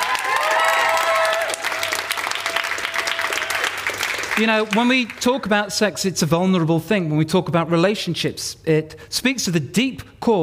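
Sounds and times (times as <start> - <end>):
audience applause: 0.0 - 5.2
speech: 4.4 - 10.4.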